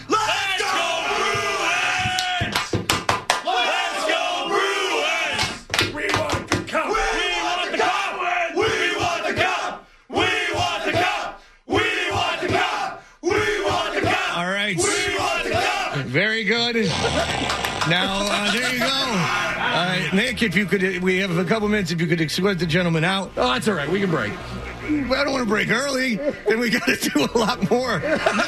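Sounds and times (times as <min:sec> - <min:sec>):
crowd giving a thunderous cheer: 0:00.0 - 0:16.1, 0:16.8 - 0:21.0, 0:23.3 - 0:28.4
speech: 0:16.7 - 0:28.4
laughter: 0:16.8 - 0:20.6, 0:23.5 - 0:28.4.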